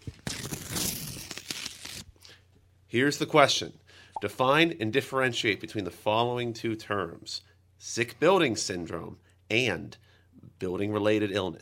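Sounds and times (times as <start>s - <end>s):
paper envelope tearing open: 0.0s - 2.2s
speech: 2.9s - 11.5s.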